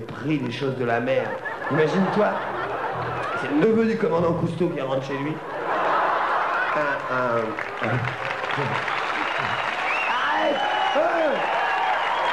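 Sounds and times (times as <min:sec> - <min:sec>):
speech: 0:00.0 - 0:02.6, 0:03.4 - 0:05.6, 0:06.8 - 0:09.0
laughter: 0:01.0 - 0:04.4, 0:05.1 - 0:09.8
audience applause: 0:01.7 - 0:03.6, 0:05.6 - 0:12.3.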